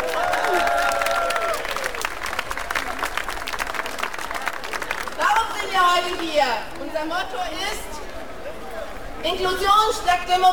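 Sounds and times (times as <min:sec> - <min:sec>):
crowd applause at a demonstration: 0:00.0 - 0:06.2
speech: 0:05.8 - 0:08.0, 0:09.2 - 0:10.5.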